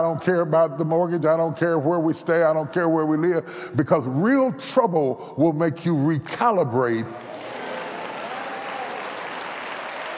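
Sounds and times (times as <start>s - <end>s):
speech: 0.0s - 7.3s
audience clapping at a talk: 7.1s - 10.1s.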